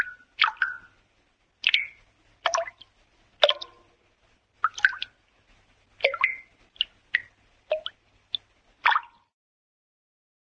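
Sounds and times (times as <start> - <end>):
cartoon water drips: 0.0 - 1.0, 1.6 - 3.9, 4.6 - 5.2, 6.0 - 9.3.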